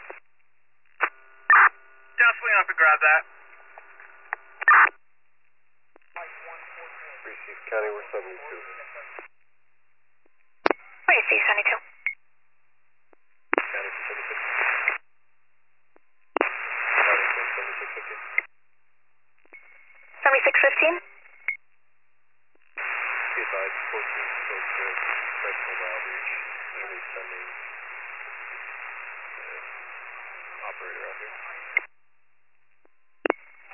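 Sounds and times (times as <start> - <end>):
harsh band-limited radio static: 0.0 - 0.2, 0.9 - 5.0, 6.0 - 9.3, 10.7 - 11.9, 13.5 - 15.0, 16.4 - 18.5, 19.6 - 21.0, 22.6 - 31.9, 33.2 - 33.7
speech: 2.4 - 3.4, 7.5 - 8.8, 11.1 - 11.8.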